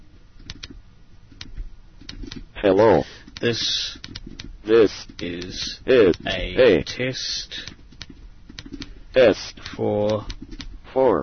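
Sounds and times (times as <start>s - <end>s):
keystrokes on a computer keyboard typing a greeting into a message editor: 0.4s - 2.4s, 3.3s - 6.4s, 7.6s - 10.7s
speech: 2.6s - 4.1s, 4.7s - 7.8s, 9.2s - 11.2s.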